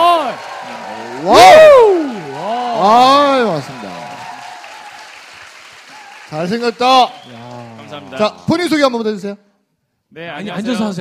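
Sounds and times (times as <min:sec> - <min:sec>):
welcoming applause from audience: 0:00.0 - 0:08.8
speech: 0:00.6 - 0:01.5, 0:06.4 - 0:09.5, 0:10.1 - 0:10.9.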